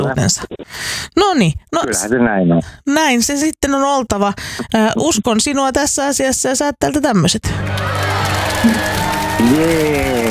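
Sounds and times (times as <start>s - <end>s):
speech: 0.0s - 10.2s
crowd applause and cheering: 7.5s - 10.2s
high whoops: 7.7s - 10.2s.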